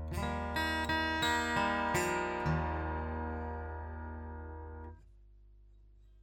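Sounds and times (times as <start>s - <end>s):
114ce melodies and open chords: 0.1s - 4.9s.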